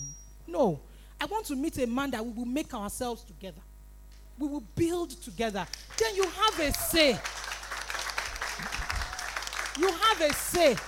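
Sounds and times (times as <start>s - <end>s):
speech: 0.5s - 3.7s, 4.4s - 7.4s, 9.8s - 10.8s
audience clapping: 5.7s - 10.8s.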